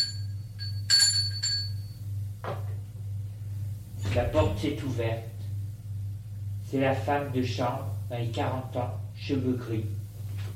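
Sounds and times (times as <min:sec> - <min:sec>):
doorbell ringing: 0:00.0 - 0:02.0
steady low hum: 0:00.0 - 0:10.5
speech: 0:04.2 - 0:05.4, 0:06.7 - 0:10.0.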